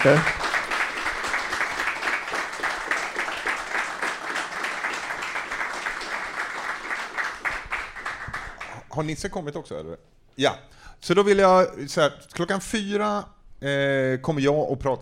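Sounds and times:
speech: 0:00.0 - 0:00.3, 0:09.0 - 0:15.0
applause: 0:00.0 - 0:08.9.

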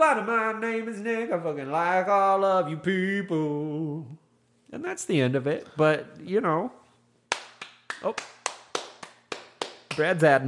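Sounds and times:
speech: 0:00.0 - 0:06.8, 0:08.0 - 0:08.4, 0:10.0 - 0:10.4
low hum: 0:00.0 - 0:10.4
hand clapping: 0:07.3 - 0:10.4.

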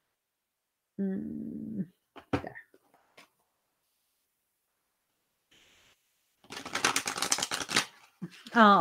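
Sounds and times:
speech: 0:01.0 - 0:02.0, 0:08.6 - 0:08.7
Kuan Yin oracle deck cards riffling while shuffled: 0:06.4 - 0:08.1.

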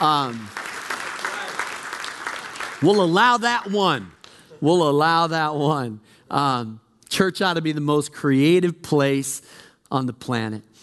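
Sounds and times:
audience applause: 0:00.0 - 0:03.4
speech: 0:00.1 - 0:00.6, 0:02.8 - 0:10.7.

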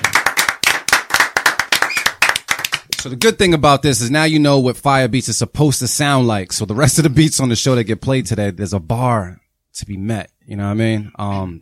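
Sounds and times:
audience clapping: 0:00.0 - 0:03.4
speech: 0:03.0 - 0:11.6.

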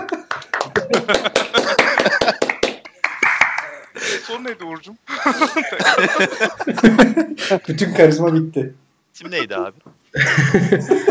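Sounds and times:
small audience clapping: 0:00.0 - 0:04.0
laughter: 0:00.0 - 0:04.5, 0:05.1 - 0:07.9, 0:10.1 - 0:11.0
speech: 0:00.9 - 0:02.2, 0:04.3 - 0:11.0.

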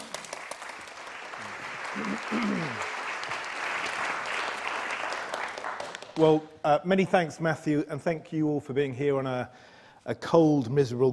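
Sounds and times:
audience applause welcoming a speaker to the stage: 0:00.0 - 0:06.4
speech: 0:02.0 - 0:02.9, 0:06.2 - 0:11.1.

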